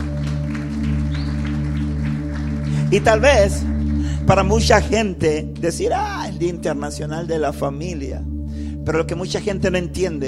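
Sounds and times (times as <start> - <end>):
audience applause: 0.0 - 4.1
speech: 2.9 - 3.7, 4.3 - 10.2.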